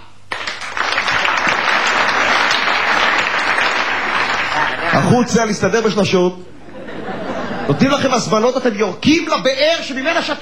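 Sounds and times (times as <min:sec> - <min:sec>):
group applause in unison: 0:00.3 - 0:05.4
laughter: 0:04.1 - 0:05.2, 0:06.5 - 0:08.5, 0:09.9 - 0:10.4
speech: 0:05.1 - 0:06.6, 0:07.7 - 0:10.4.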